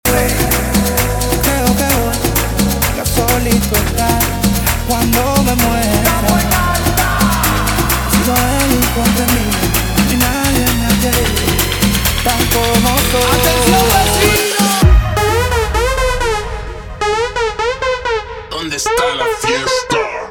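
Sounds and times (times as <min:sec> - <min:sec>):
guaracha remix music: 0:00.0 - 0:20.2.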